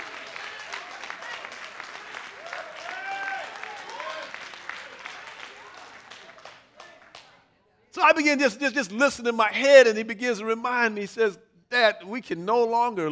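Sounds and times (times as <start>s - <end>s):
cheers and shouted voices: 0.0s - 4.4s
audience applause: 0.0s - 7.3s
speech: 8.0s - 13.0s.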